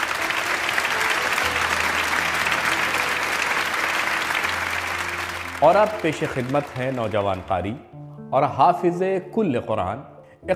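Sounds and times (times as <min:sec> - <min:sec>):
loud audience applause: 0:00.0 - 0:07.7
speech: 0:05.6 - 0:10.5.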